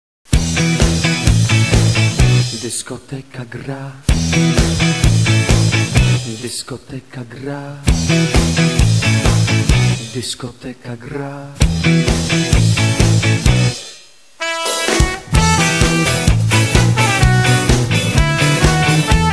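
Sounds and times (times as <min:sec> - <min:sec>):
disco music: 0:00.3 - 0:02.8, 0:04.1 - 0:06.4, 0:07.9 - 0:10.1, 0:11.6 - 0:19.3.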